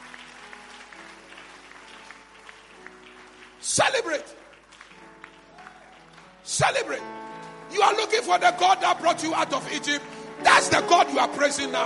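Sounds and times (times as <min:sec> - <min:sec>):
audience clapping: 0:00.0 - 0:11.8
speech: 0:03.8 - 0:04.4, 0:06.6 - 0:11.8.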